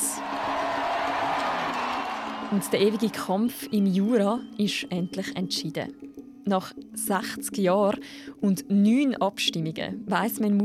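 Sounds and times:
crowd cheering: 0.0s - 3.7s
speech: 2.5s - 10.6s.

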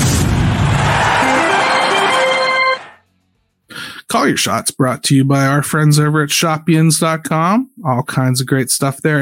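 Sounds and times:
theme music for a show segment: 0.1s - 3.0s
speech: 4.1s - 9.2s.

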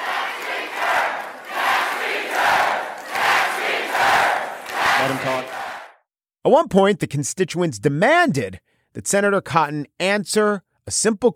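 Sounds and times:
town hall crowd chanting: 0.0s - 6.1s
speech: 6.5s - 11.3s.

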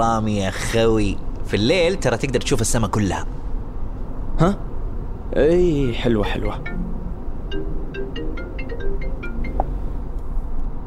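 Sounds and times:
speech: 0.0s - 3.4s, 4.4s - 4.7s, 5.3s - 6.9s
electronic phone ringtone of an incoming call inside a car: 6.4s - 10.0s.

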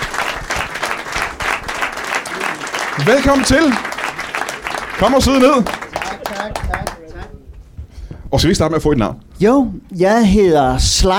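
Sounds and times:
audience applause for a guest on a Danish talk show: 0.0s - 7.0s
speech: 3.0s - 3.9s, 5.0s - 5.8s, 8.3s - 11.1s.

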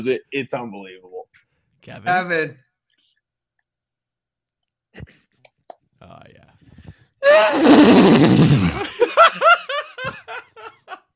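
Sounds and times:
speech: 0.0s - 2.6s, 5.0s - 5.2s, 7.2s - 9.0s
man imitating horse neigh: 7.2s - 8.8s
laughter: 8.7s - 11.1s.

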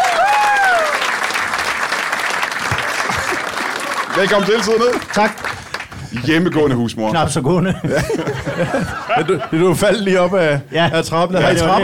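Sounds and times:
studio audience at a talk show applauding a guest: 0.0s - 6.9s
laughter: 2.7s - 5.1s, 7.5s - 11.8s
speech: 4.2s - 5.5s, 6.1s - 11.8s.

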